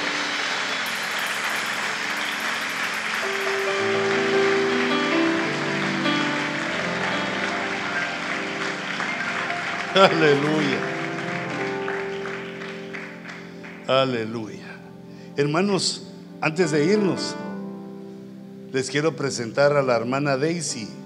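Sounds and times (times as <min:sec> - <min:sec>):
audience clapping loudly as an offering to the Lord: 0:00.0 - 0:13.9
speech: 0:10.0 - 0:11.0, 0:13.9 - 0:14.6, 0:15.4 - 0:17.5, 0:18.7 - 0:21.0.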